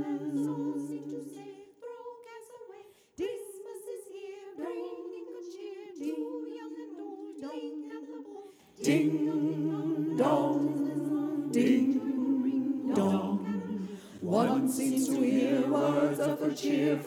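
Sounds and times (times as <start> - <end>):
tenor and bass voices singing a carol: 0.0 - 1.5, 8.8 - 17.0.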